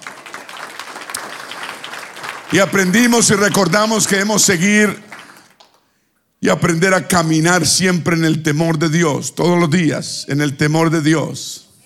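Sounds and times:
audience applause: 0.0s - 5.8s
speech: 2.5s - 5.2s, 6.4s - 11.6s.

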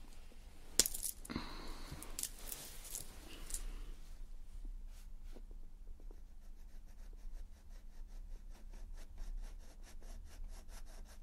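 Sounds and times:
low steady hum: 0.0s - 7.0s
coloured pencils scratching across paper: 6.2s - 11.2s.

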